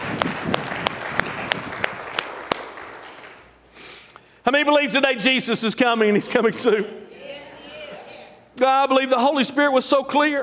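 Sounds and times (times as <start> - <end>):
scattered applause and crowd noise: 0.0 - 3.6
audience clapping in unison: 0.0 - 3.7
speech: 4.5 - 7.1, 8.6 - 10.4.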